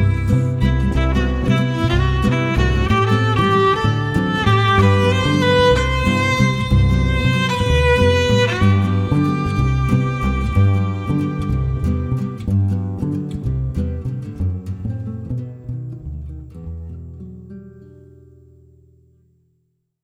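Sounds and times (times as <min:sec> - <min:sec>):
jazz trio playing: 0:00.0 - 0:15.2.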